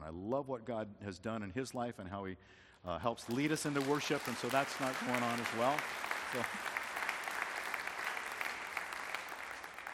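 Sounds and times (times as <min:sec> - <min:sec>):
speech: 0:00.1 - 0:06.7
church congregation applauding during a service: 0:03.2 - 0:09.9.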